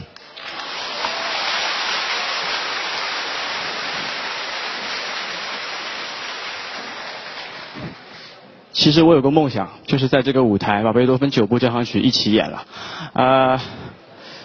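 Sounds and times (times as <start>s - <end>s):
enthusiastic audience applause: 0.0s - 8.4s
speech: 8.8s - 13.8s.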